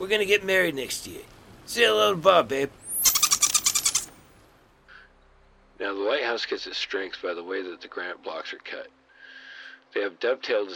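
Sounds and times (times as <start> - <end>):
speech: 0.0 - 2.8, 5.8 - 9.0, 9.9 - 10.7
porpoise chattering call: 2.8 - 4.1.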